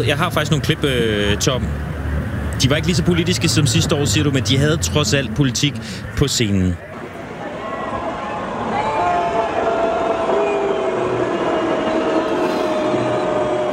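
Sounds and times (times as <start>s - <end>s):
speech: 0.0s - 1.9s, 2.6s - 6.9s
concert crowd roaring and shouting: 6.8s - 13.7s.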